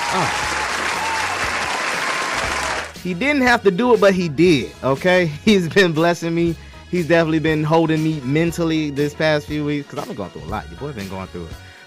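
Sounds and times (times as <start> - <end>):
crowd applause: 0.0 - 3.0
speech: 0.1 - 0.6, 3.0 - 11.7.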